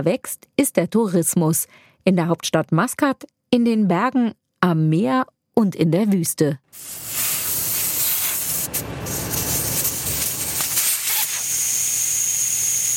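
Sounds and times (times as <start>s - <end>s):
speech: 0.0s - 7.3s
air released from off-road vehicle tyres: 6.8s - 11.5s.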